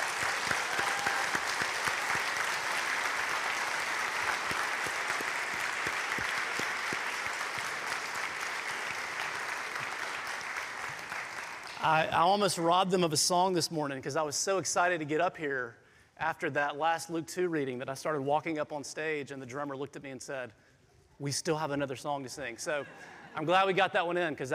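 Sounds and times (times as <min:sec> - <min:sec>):
audience applause: 0:00.0 - 0:12.3
speech: 0:11.8 - 0:20.6, 0:21.2 - 0:24.5.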